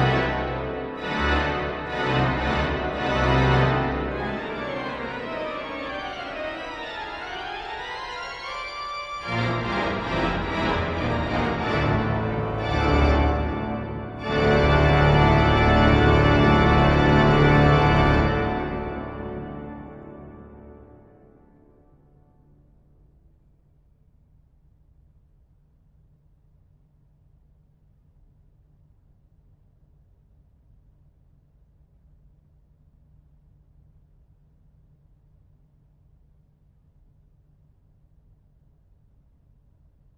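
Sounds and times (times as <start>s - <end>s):
improvised organ verset on a cathedral Cavaillé-Coll organ: 0.0s - 20.7s.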